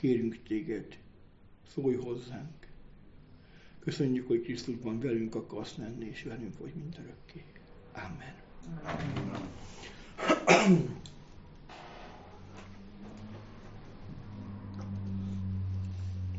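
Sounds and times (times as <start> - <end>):
speech: 0.0 - 1.0, 1.7 - 2.7, 3.8 - 11.2
person with allergy clearing throat: 10.2 - 11.0
low hum: 11.0 - 16.3.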